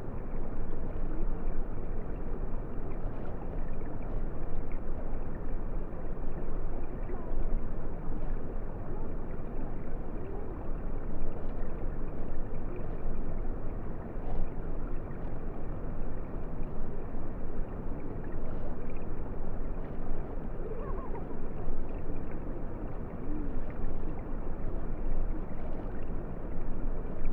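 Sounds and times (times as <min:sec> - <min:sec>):
underwater river sounds through a hydrophone: 0:00.0 - 0:27.3.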